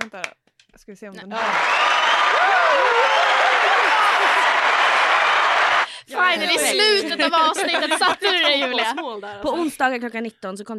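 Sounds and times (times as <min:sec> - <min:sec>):
speech: 0:00.1 - 0:03.1, 0:06.1 - 0:10.7
applause sound effect from a crowd: 0:01.3 - 0:08.6
cheering voices: 0:01.3 - 0:08.8
laughter: 0:02.5 - 0:09.6.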